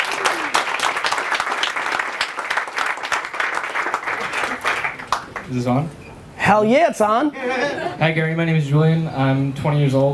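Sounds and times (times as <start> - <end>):
audience applause: 0.0 - 5.5
speech: 5.5 - 10.1
laughter: 7.3 - 8.0.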